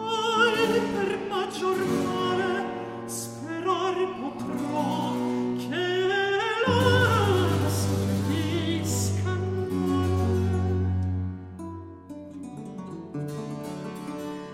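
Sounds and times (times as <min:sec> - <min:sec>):
recitative singing: 0:00.0 - 0:11.1.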